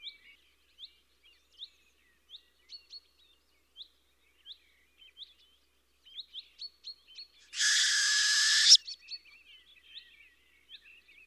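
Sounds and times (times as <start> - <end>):
owl hoarse hissing screech: 7.6 - 8.8
small birds chirping: 7.6 - 9.0.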